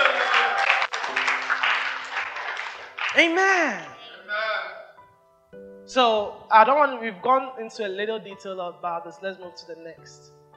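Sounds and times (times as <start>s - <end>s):
church congregation clapping in praise: 0.0s - 3.9s
speech: 3.2s - 3.9s, 5.9s - 10.4s.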